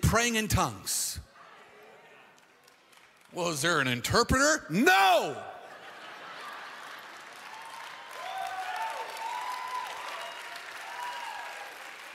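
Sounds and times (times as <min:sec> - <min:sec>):
speech: 0:00.1 - 0:01.2, 0:03.3 - 0:05.5
audience clapping: 0:02.2 - 0:03.8, 0:06.3 - 0:12.1
laughter: 0:05.2 - 0:07.5.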